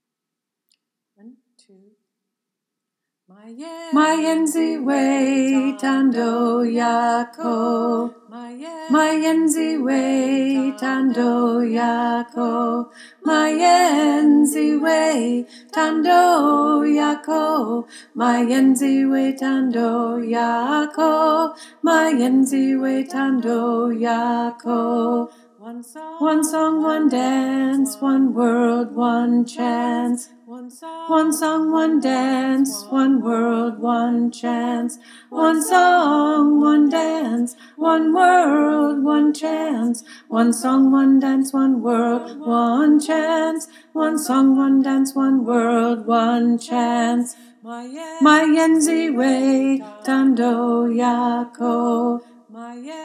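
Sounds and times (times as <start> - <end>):
alto choir singing: 3.9 - 30.2, 30.8 - 47.2, 47.9 - 52.2.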